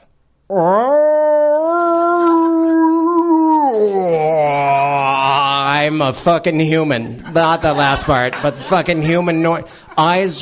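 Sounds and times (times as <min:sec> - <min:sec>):
speech: 0:00.5 - 0:01.0, 0:06.0 - 0:10.4
person imitating a distressed cat's yowl: 0:00.5 - 0:05.8
laughter: 0:07.0 - 0:10.4.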